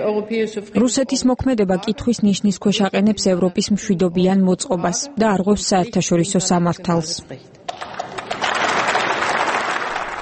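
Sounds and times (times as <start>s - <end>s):
speech: 0.0s - 8.0s
applause in the German Bundestag for statements by Angela Merkel: 7.8s - 10.1s.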